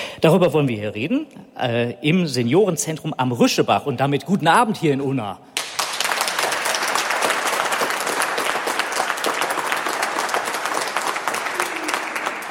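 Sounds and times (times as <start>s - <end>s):
speech: 0.2s - 5.5s
audience applauding: 5.6s - 12.4s.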